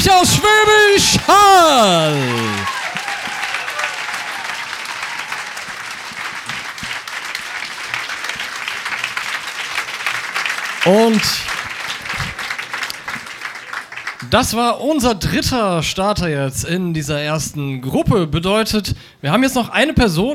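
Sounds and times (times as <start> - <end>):
audience applause: 0.0 - 14.3
speech: 10.9 - 11.5, 14.3 - 20.3.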